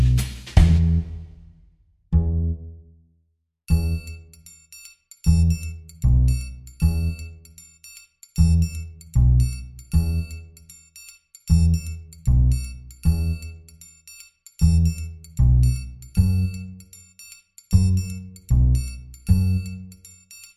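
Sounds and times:
percussion: 0.0s - 1.7s, 3.7s - 20.5s
bass: 0.0s - 2.9s, 3.7s - 4.5s, 5.2s - 7.6s, 8.4s - 10.7s, 11.5s - 13.8s, 14.6s - 17.0s, 17.7s - 20.1s.

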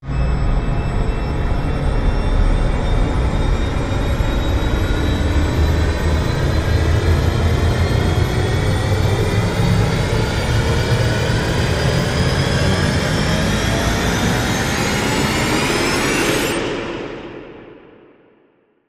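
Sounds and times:
long aircraft rise: 0.1s - 17.9s.

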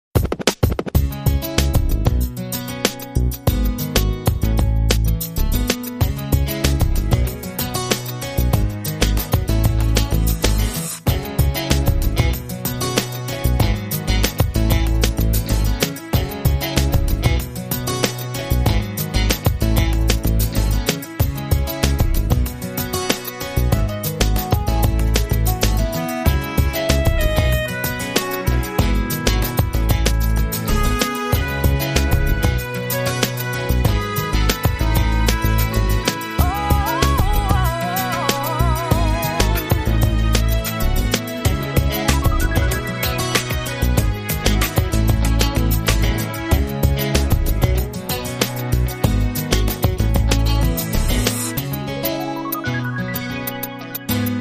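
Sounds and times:
shuffle beat tune: 0.1s - 23.0s, 23.7s - 37.8s, 38.9s - 54.3s.

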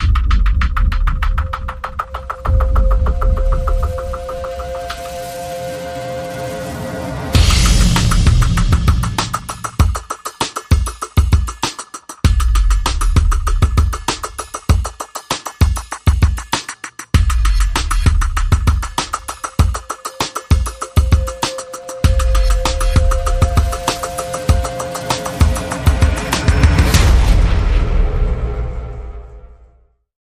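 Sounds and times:
drums: 0.0s - 29.4s
sound effects: 1.6s - 9.9s, 17.2s - 29.7s.

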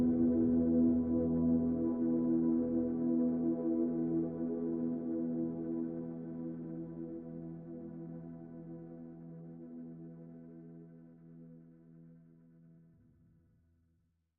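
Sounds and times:
synth pads in E: 0.0s - 10.8s.

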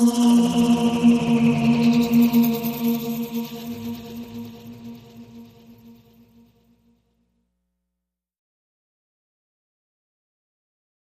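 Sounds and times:
ominous soundtrack music: 0.0s - 6.4s.

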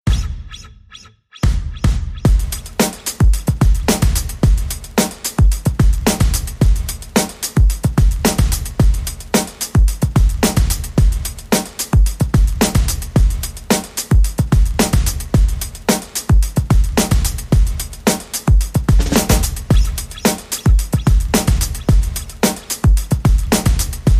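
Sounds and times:
music beat: 0.1s - 24.1s.

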